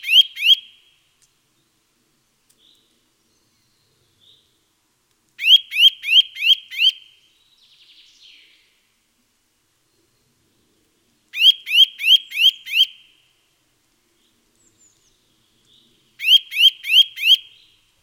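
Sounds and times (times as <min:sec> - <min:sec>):
Eurasian nuthatch Sitta europaea calling rising whistled notes: 0:00.0 - 0:00.6, 0:05.4 - 0:07.0, 0:11.4 - 0:13.0, 0:16.2 - 0:17.7.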